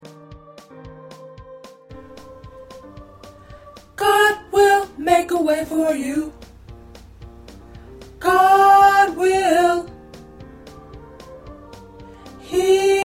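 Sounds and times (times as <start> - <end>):
tenor singing: 1.9 - 6.4, 8.2 - 10.0, 10.6 - 13.0.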